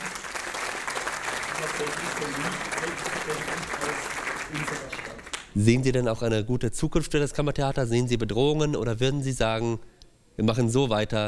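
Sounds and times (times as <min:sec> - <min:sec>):
audience applause: 0:00.0 - 0:05.5
speech: 0:01.6 - 0:11.2.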